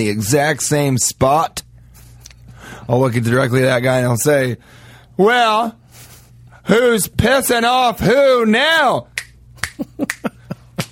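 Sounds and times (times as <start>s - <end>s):
speech: 0.0s - 1.6s, 2.9s - 5.8s, 6.6s - 9.1s
finger snaps: 9.2s - 10.9s.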